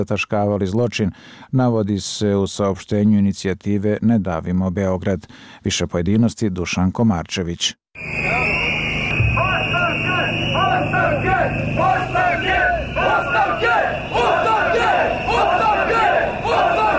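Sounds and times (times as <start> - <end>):
speech: 0.0 - 8.2
protest whistles in the streets of Belgrade: 8.0 - 16.9.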